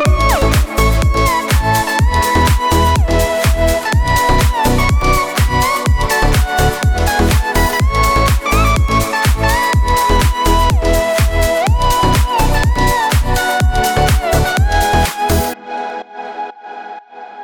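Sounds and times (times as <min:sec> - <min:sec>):
summery deep house music: 0:00.1 - 0:15.8.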